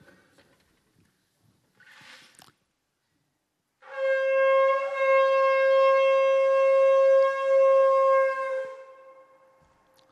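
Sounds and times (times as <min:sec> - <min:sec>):
horn blowing loudly: 0:03.8 - 0:09.7.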